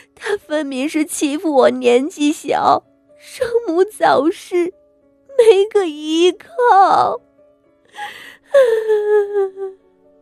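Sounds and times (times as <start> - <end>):
speech: 0.2 - 4.8, 5.4 - 7.3, 8.0 - 9.8
woman crying bitterly in an audio drama: 5.3 - 7.2, 8.0 - 9.9.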